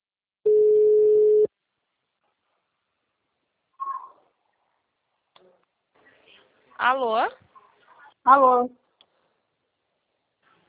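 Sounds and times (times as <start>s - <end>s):
telephone dial tone while calling: 0.5s - 1.5s
speech: 6.8s - 7.4s, 8.2s - 8.8s.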